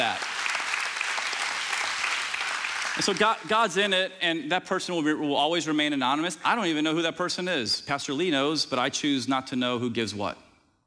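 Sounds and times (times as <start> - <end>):
audience applause: 0.0 - 3.6
speech: 3.0 - 10.4.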